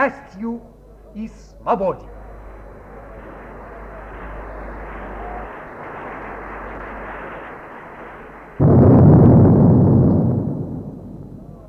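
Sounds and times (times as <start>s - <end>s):
speech: 0.0s - 2.2s
six-inch naval gun of the Aurora firing: 8.0s - 11.6s.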